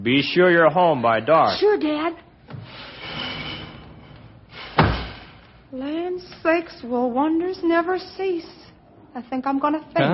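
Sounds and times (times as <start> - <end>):
speech: 0.0 - 2.3, 5.7 - 8.6, 9.2 - 10.1
door swinging shut: 4.7 - 5.4.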